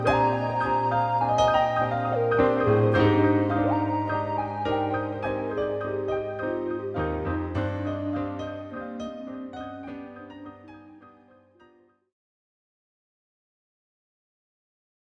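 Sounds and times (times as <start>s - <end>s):
cool jazz music: 0.0s - 10.7s.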